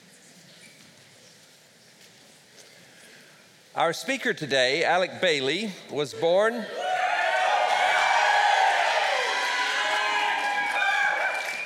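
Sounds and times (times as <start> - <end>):
speech: 3.8 - 6.8
audience applause: 6.8 - 11.6.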